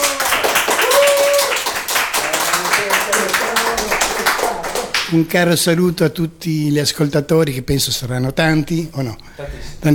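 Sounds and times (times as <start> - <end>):
applause: 0.0 - 5.1
speech: 5.1 - 9.9.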